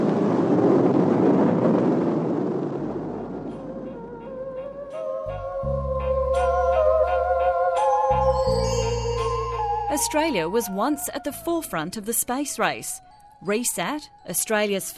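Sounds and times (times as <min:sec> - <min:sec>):
rocket lift-off roar at the 1967 launch of WRESAT: 0:00.0 - 0:05.1
music: 0:03.4 - 0:14.9
speech: 0:10.0 - 0:14.9.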